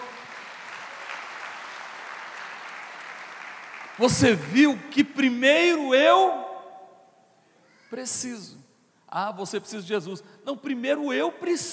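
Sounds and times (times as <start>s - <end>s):
audience applause: 0.0s - 4.5s
speech: 4.0s - 6.4s, 7.9s - 11.7s.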